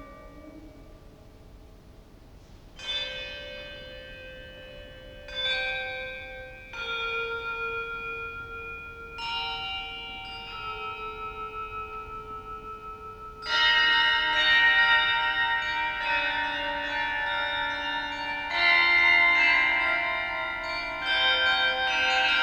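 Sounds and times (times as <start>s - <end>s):
carillon bells playing a suite: 6.4s - 22.4s.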